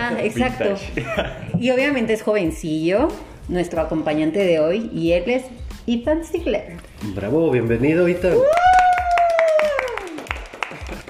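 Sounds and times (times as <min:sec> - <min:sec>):
speech: 0:00.1 - 0:08.6
laughter: 0:00.4 - 0:01.8
live applause: 0:08.3 - 0:11.0.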